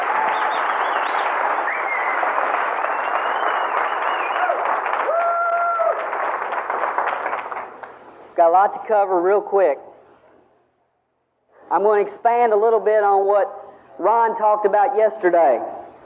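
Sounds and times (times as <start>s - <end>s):
audience applause welcoming a speaker: 0.0s - 8.1s
speech: 8.5s - 9.9s, 11.7s - 15.8s.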